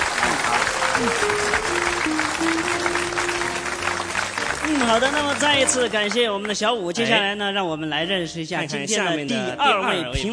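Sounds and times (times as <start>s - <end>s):
audience applause during a show as judges are introduced: 0.0s - 6.6s
speech: 1.0s - 3.4s, 4.7s - 10.3s.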